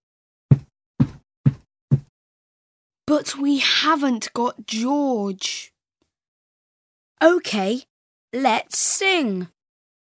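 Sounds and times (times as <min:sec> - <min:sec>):
feet stamping: 0:00.5 - 0:02.1
speech: 0:03.1 - 0:05.7, 0:07.2 - 0:09.6.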